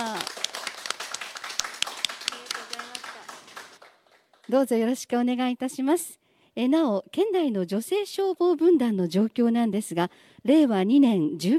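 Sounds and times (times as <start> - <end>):
audience applause: 0.0 - 4.5
speech: 4.5 - 11.5.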